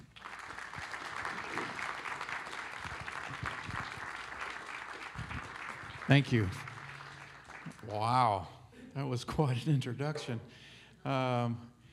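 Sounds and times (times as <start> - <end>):
audience applause welcoming a couple of speakers: 0.0 - 8.4
speech: 6.1 - 6.6, 7.9 - 11.7.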